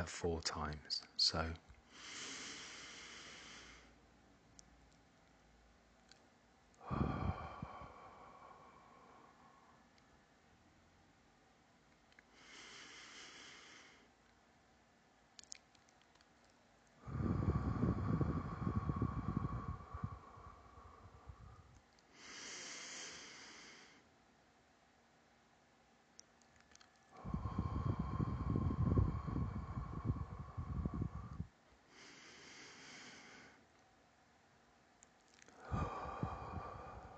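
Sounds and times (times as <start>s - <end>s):
speech: 0.0s - 2.2s
slow deep breathing during a box breathing exercise: 1.8s - 4.0s, 6.1s - 10.3s, 12.1s - 14.2s, 17.0s - 24.1s, 26.7s - 33.7s, 35.3s - 37.1s.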